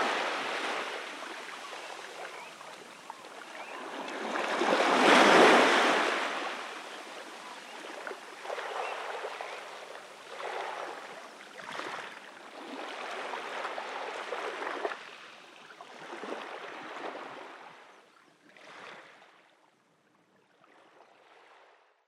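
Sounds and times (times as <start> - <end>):
shore soundscape: 0.0 - 14.6.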